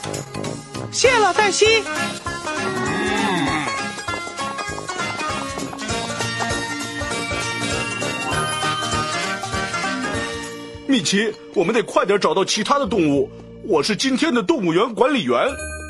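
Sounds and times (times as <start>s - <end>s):
loud busy music: 0.0s - 10.6s
speech: 0.9s - 3.5s, 11.0s - 15.7s
voices imitating cow moos: 2.5s - 4.0s.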